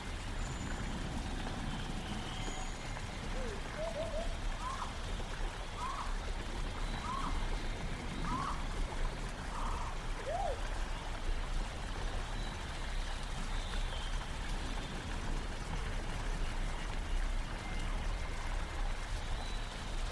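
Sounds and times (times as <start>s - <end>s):
low rumble with hiss: 0.0s - 20.1s
short warbling calls: 0.4s - 10.9s.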